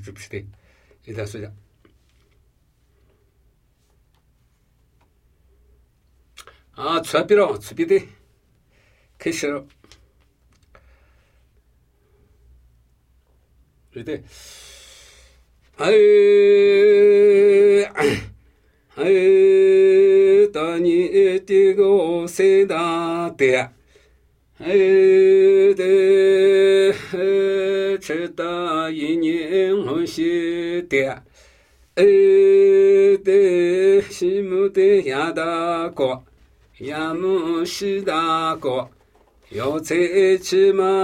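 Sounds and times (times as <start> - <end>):
Namuyi Tibetan ritual chanting: 15.7 - 23.8, 24.5 - 41.0.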